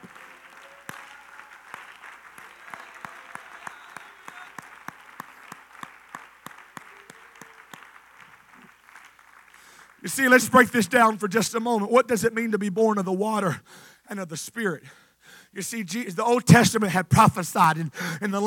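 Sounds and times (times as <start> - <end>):
crowd clapping: 0.0 - 11.4
speech: 10.0 - 18.4.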